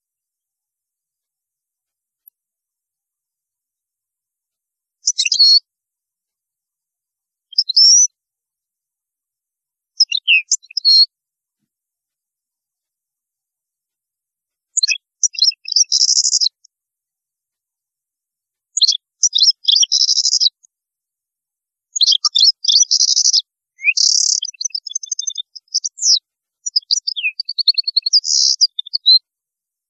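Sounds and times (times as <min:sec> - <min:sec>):
European goldfinch song: 0:05.0 - 0:05.7, 0:07.5 - 0:08.2, 0:09.9 - 0:11.1, 0:14.7 - 0:16.7, 0:18.7 - 0:20.7, 0:21.9 - 0:29.2.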